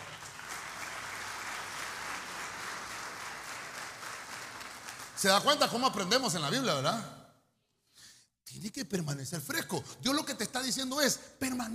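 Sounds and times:
audience clapping: 0.0s - 6.5s
speech: 5.2s - 7.2s, 8.6s - 11.7s.

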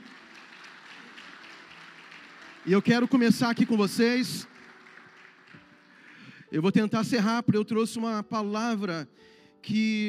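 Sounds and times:
audience applause: 0.0s - 6.4s
speech: 2.6s - 4.5s, 6.5s - 10.0s.

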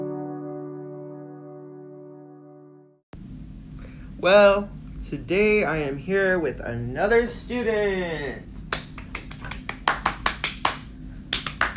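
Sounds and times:
low hum: 3.2s - 11.7s
speech: 4.2s - 8.5s
hands clapping: 8.6s - 11.7s.

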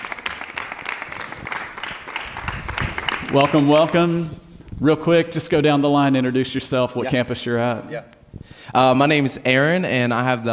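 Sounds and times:
audience applause at a church youth gathering: 0.0s - 4.0s
speech: 3.3s - 10.5s.

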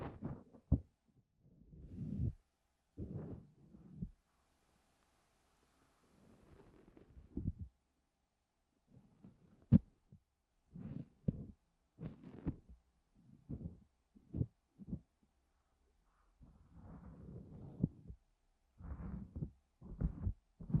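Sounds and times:
deep ear cleaning muffled rubbing thumps: 0.0s - 0.9s, 1.8s - 2.4s, 3.0s - 4.2s, 6.5s - 7.7s, 9.0s - 15.2s, 16.4s - 18.2s, 18.8s - 20.7s.

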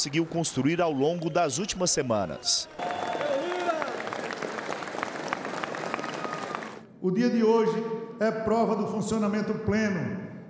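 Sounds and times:
speech: 0.0s - 3.1s, 7.0s - 10.2s
applause from the full chamber: 0.0s - 6.8s.

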